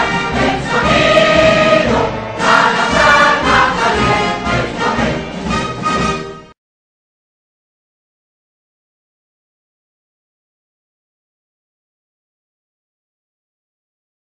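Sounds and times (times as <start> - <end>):
national anthem: 0.0 - 6.4.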